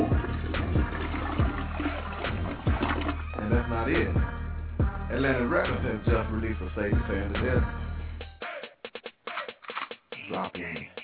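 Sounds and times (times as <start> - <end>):
toilet flushing sound effect: 0.0 - 4.0
speech: 3.5 - 4.3, 5.1 - 7.8, 10.3 - 11.0.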